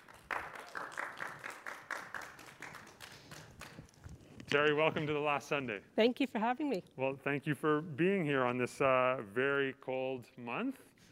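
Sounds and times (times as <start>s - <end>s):
applause from a small audience: 0.0s - 3.9s
speech: 4.5s - 10.9s.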